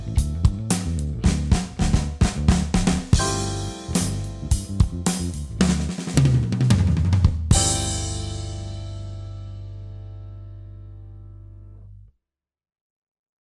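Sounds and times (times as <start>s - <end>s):
pop drum fills: 0.0s - 9.3s.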